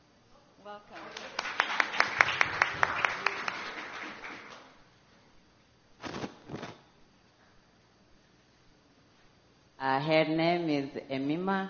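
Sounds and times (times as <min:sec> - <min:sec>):
speech: 0:00.6 - 0:01.5, 0:09.9 - 0:11.6
audience clapping for a person being introduced at a group welcome: 0:00.9 - 0:04.8.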